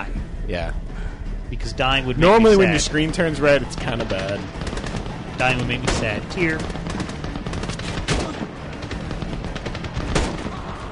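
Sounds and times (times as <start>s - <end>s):
speech: 0.5s - 0.9s, 1.5s - 4.8s, 5.4s - 6.8s
video game gunfire: 2.4s - 10.8s.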